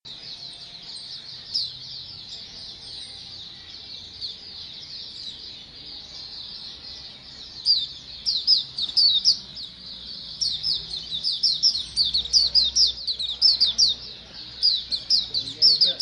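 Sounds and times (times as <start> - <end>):
common nightingale song: 0.0 - 15.9.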